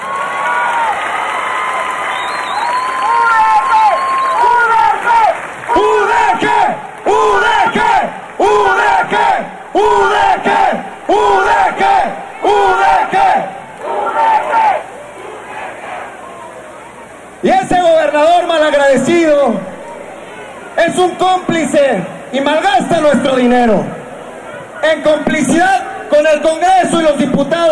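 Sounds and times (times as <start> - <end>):
crowd clapping: 0.0 - 9.2
large crowd roaring and cheering: 0.0 - 21.8
crowd chanting rhythmically: 5.7 - 16.6
speech: 20.9 - 24.0, 24.9 - 27.7.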